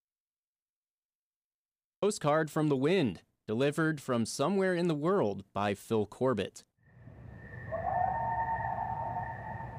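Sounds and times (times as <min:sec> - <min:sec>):
speech: 0:02.0 - 0:06.7
coyote howling in western North America: 0:07.4 - 0:09.7.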